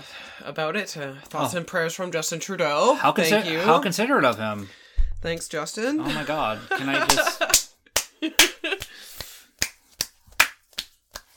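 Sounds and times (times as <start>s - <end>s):
speech: 0.4s - 7.5s
laughter: 6.0s - 7.6s
limp-wristed claps: 7.1s - 11.3s.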